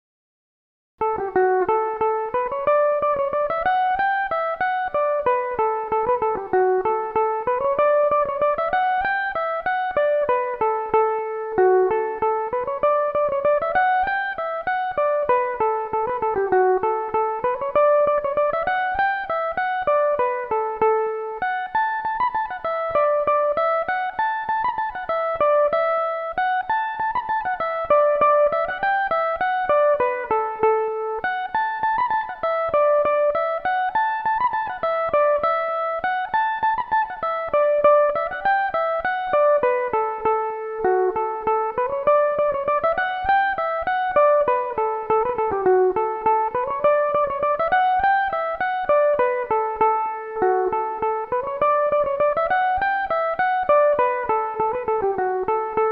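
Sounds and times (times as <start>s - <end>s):
mandolin in D major: 1.0s - 55.9s.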